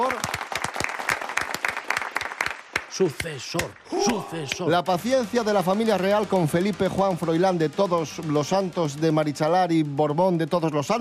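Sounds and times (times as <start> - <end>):
studio applause: 0.0 - 9.0
speech: 3.0 - 11.0.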